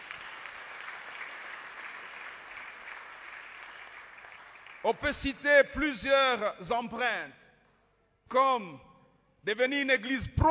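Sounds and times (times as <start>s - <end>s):
church congregation applauding: 0.0s - 5.6s
speech: 4.8s - 7.5s, 8.3s - 10.4s.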